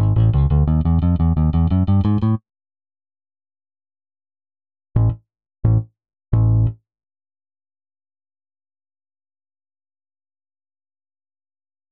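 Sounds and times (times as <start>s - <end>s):
bass: 0.0s - 2.4s, 5.0s - 6.8s.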